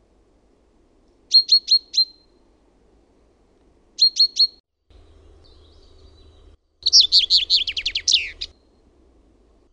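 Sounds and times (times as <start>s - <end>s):
common chaffinch song of descending trills: 0.0s - 9.7s.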